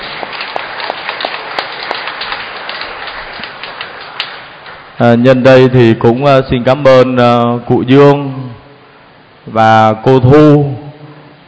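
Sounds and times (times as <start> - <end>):
applause: 0.0 - 4.9
speech: 5.0 - 8.4, 9.5 - 10.8.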